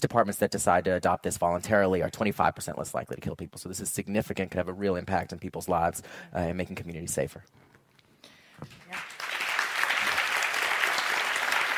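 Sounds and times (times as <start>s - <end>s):
speech: 0.0s - 7.7s
audience applause: 8.8s - 11.7s.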